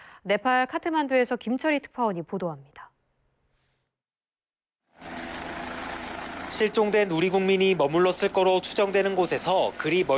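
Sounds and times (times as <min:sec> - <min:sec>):
speech: 0:00.2 - 0:02.9, 0:06.5 - 0:10.1
military helicopter taking off: 0:04.9 - 0:10.1.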